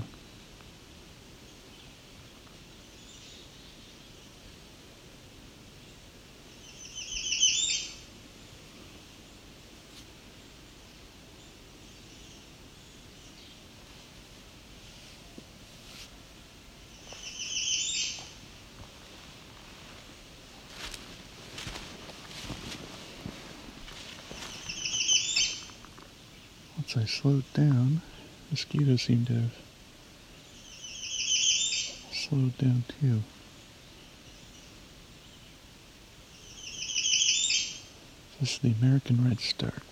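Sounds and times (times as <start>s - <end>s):
black-capped chickadee calling: 6.5s - 8.1s, 16.9s - 18.4s, 24.3s - 26.8s, 30.4s - 32.4s, 34.3s - 38.0s
speech: 27.0s - 29.6s, 32.3s - 33.4s, 38.4s - 39.9s.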